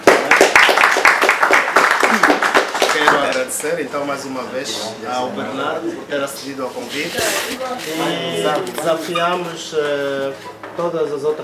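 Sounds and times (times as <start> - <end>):
audience applause at a debate on land for housing: 0.0 - 3.3
speech: 3.6 - 11.4.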